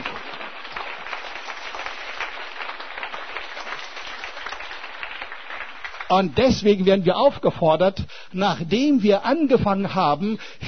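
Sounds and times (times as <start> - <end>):
audience clapping applause: 0.0 - 6.4
speech: 6.1 - 10.6.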